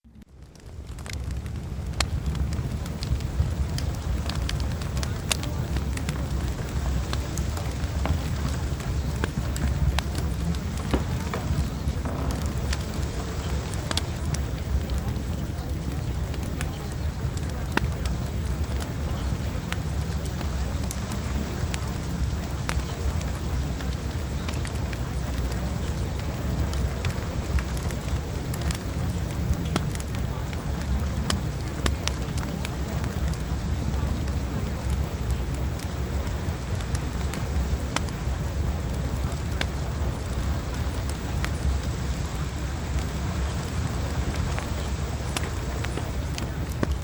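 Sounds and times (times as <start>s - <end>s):
fireplace: 0.1s - 47.0s.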